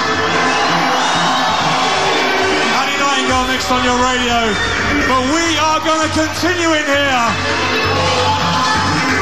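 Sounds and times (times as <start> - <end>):
crowd cheering at a live club night in an arena: 0.0 - 9.1
speech: 3.6 - 8.2.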